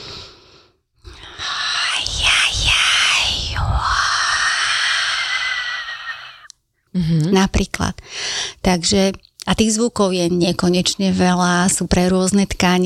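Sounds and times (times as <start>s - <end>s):
breathy intake: 0.0s - 6.5s
voice imitating blowing wind: 1.1s - 6.5s
speech: 7.0s - 12.8s.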